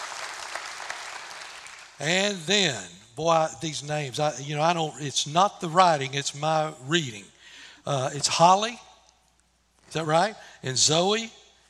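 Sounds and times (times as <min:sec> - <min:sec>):
audience applause: 0:00.0 - 0:02.0
speech: 0:02.0 - 0:08.9, 0:09.9 - 0:11.4.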